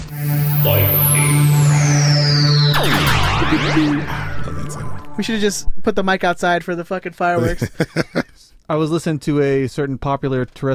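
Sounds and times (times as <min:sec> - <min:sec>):
lightning round jingle: 0:00.1 - 0:05.7
speech: 0:03.5 - 0:04.1, 0:05.2 - 0:10.7
laughter: 0:07.4 - 0:08.4.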